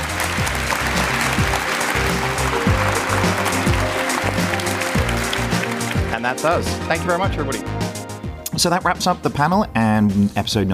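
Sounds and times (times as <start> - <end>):
audience applause: 0.0 - 7.3
speech: 6.3 - 7.9, 8.6 - 10.7.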